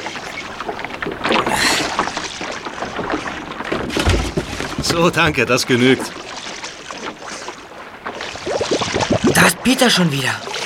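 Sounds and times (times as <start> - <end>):
water splashing around a small boat: 0.0 - 10.6
boat hull knocking and creaking: 0.1 - 7.3
speech: 4.9 - 6.2, 9.6 - 10.5.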